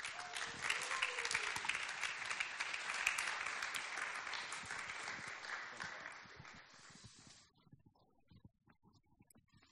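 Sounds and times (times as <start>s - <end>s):
audience applause: 0.0s - 7.4s.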